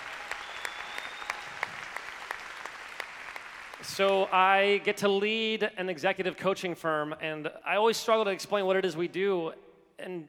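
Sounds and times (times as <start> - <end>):
audience clapping: 0.0 - 4.5
speech: 3.8 - 10.2.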